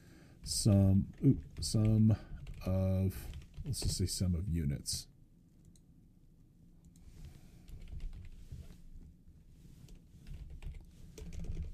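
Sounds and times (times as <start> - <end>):
speech: 0.5 - 5.1
faint typing on a computer keyboard: 0.7 - 4.0, 7.7 - 8.4, 10.2 - 11.7.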